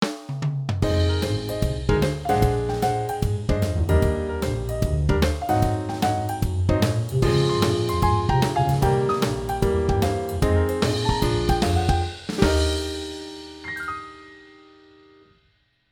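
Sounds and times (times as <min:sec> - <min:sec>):
jazz music: 0:00.8 - 0:14.7.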